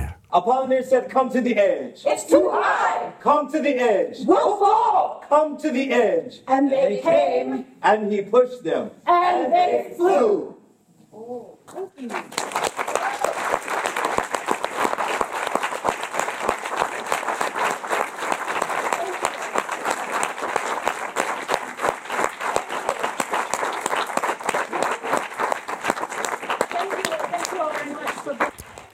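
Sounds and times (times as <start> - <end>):
audience applause: 0.0 - 0.2, 12.4 - 28.9
speech: 0.4 - 10.5, 11.2 - 12.9.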